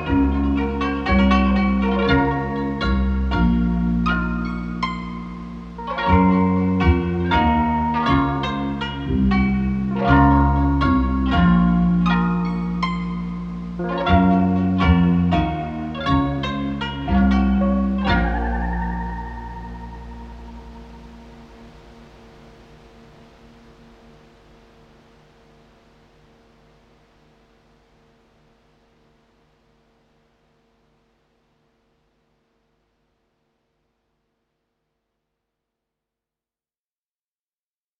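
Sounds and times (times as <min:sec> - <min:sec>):
cassette plucked notes: 0:00.0 - 0:25.3.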